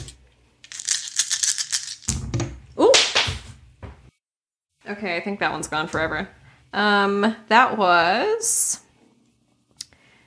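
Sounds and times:
dice rolling: 0.0 - 2.2
speech: 4.9 - 8.8.

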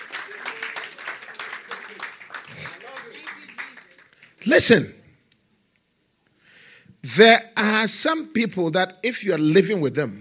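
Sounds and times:
audience clapping: 0.0 - 4.6
speech: 4.4 - 5.0, 7.2 - 10.2.

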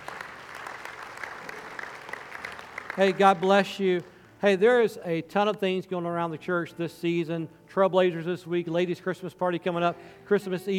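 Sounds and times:
audience applause: 0.0 - 4.3
speech: 3.0 - 10.7.

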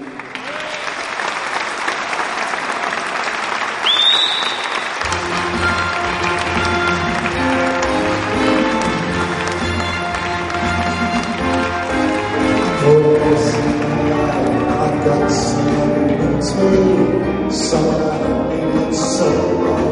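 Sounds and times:
audience applauding to welcome a performer onto the stage: 0.0 - 17.0
sustained musical tones: 5.0 - 19.8.

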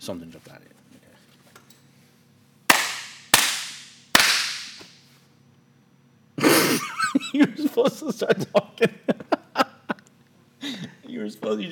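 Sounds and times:
speech: 0.0 - 0.8, 7.4 - 9.2, 11.3 - 11.6
hand claps for recording sync: 2.7 - 5.0
laughter: 6.4 - 10.1.

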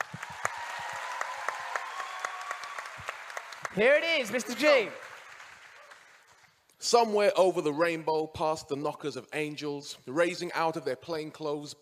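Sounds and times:
audience applause: 0.0 - 6.5
speech: 3.8 - 5.1, 6.8 - 11.8.

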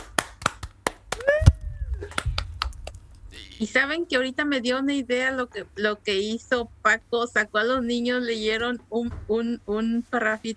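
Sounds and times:
scattered hand claps from a small group: 0.0 - 3.0
short high-pitched voice sliding upward: 3.3 - 3.7
speech: 3.6 - 10.5.

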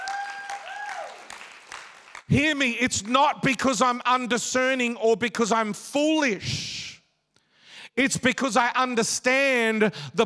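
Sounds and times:
audience clapping hands: 0.0 - 2.3
speech: 2.3 - 6.7, 8.0 - 10.2.

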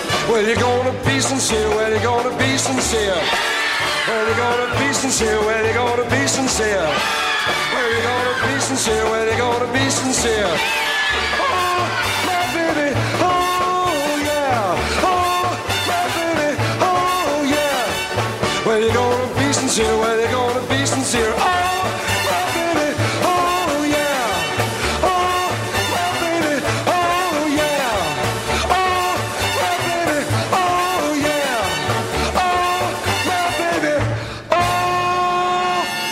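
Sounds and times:
original Broadway cast recording of show tune: 0.1 - 36.0
speech: 0.4 - 13.4.

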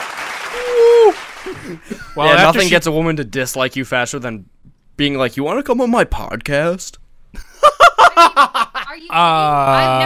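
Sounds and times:
round of applause: 0.0 - 1.9
speech: 0.5 - 8.3, 9.0 - 10.0.

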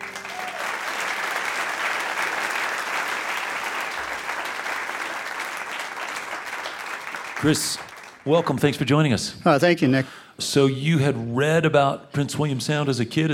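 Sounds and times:
audience applauding to welcome a guest: 0.0 - 8.8
speech: 7.4 - 13.3.

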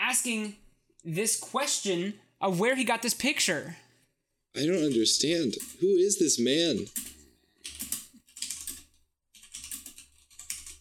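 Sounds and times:
speech: 0.1 - 3.8, 4.5 - 7.8
typing on a computer keyboard: 4.7 - 5.9, 6.5 - 10.7.

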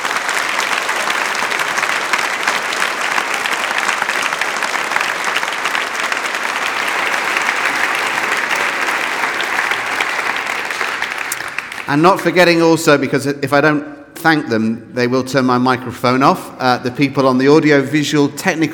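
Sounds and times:
audience applause: 0.0 - 12.4
speech: 11.9 - 18.7.

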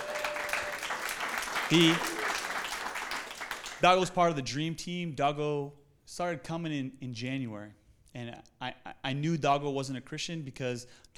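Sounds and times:
audience clapping: 0.0 - 4.0
speech: 1.7 - 2.1, 3.8 - 11.1.

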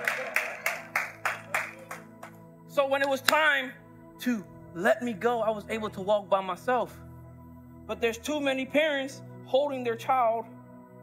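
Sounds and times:
applause in a steady rhythm: 0.0 - 3.5
speech: 2.9 - 7.0, 7.9 - 10.6.

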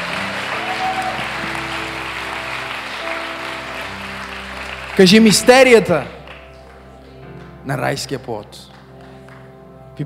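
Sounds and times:
audience applause: 0.0 - 6.9
speech: 5.0 - 6.2, 7.7 - 8.7.

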